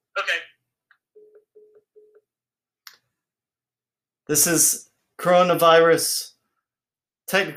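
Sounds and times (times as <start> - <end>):
telephone tones calling a caller back: 1.2 - 2.3
speech: 4.3 - 6.3, 7.3 - 7.5.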